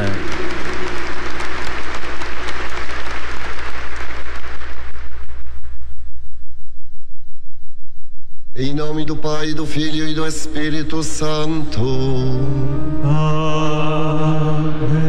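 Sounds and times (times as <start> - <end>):
audience applause: 0.0 - 5.4
speech: 8.7 - 15.0.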